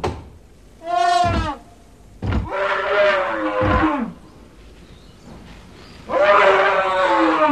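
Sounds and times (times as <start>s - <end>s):
animal trumpeting angrily: 0.8s - 1.6s, 2.4s - 4.2s, 6.1s - 7.5s.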